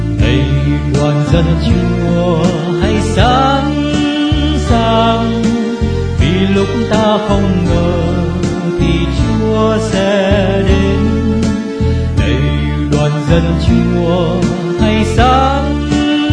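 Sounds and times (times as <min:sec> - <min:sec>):
soprano singing: 0:00.2 - 0:16.3.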